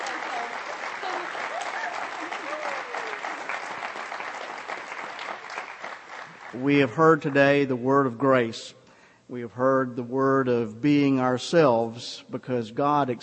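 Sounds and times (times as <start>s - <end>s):
audience applause: 0.0s - 6.6s
speech: 6.5s - 13.2s.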